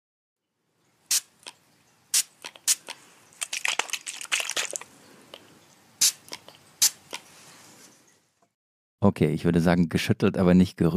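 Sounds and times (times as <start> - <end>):
hand-pumped spray bottle of skin disinfectant squirting: 1.1 - 4.9, 6.0 - 7.3
speech: 9.1 - 10.9.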